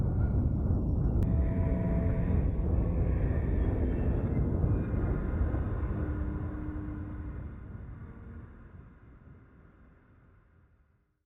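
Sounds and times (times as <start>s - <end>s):
spectral ambience: 0.0s - 6.3s.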